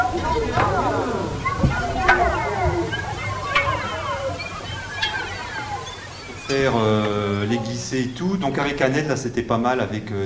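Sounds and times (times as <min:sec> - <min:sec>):
water sloshing in a basin: 0:00.0 - 0:08.8
laughter: 0:00.0 - 0:10.2
speech: 0:06.5 - 0:10.2.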